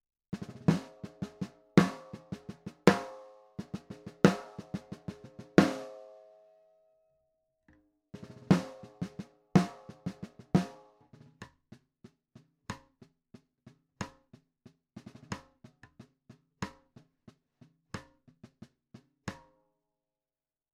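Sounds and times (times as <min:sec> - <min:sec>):
low-tuned designer snare drum: 0:00.4 - 0:06.2, 0:08.2 - 0:11.4.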